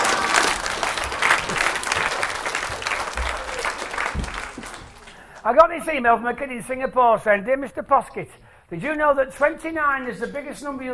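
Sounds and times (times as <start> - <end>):
audience applause: 0.0 - 5.4
speech: 5.5 - 10.9.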